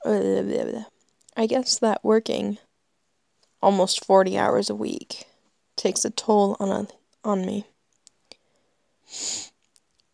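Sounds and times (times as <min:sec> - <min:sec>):
speech: 0:00.1 - 0:02.6, 0:03.6 - 0:07.7, 0:09.1 - 0:09.5
sniff from someone with tree-pollen allergies: 0:09.0 - 0:09.6.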